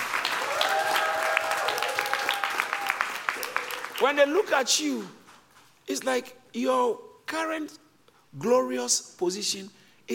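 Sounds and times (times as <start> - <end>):
audience clapping: 0.0 - 5.0
speech: 4.0 - 5.2, 5.9 - 10.1.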